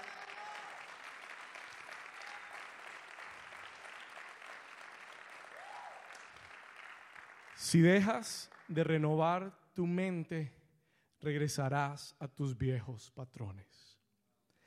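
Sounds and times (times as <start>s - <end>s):
audience applauding: 0.0s - 8.8s
speech: 7.6s - 10.6s, 11.2s - 14.0s.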